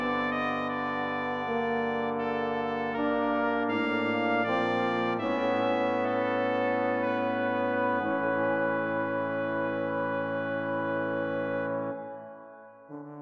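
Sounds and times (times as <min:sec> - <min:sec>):
brass quartet playing a canzona: 0:00.0 - 0:13.2.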